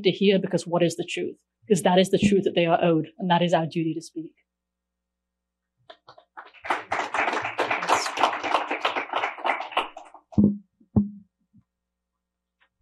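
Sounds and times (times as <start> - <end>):
speech: 0.0 - 4.4
audience applause: 6.4 - 10.2.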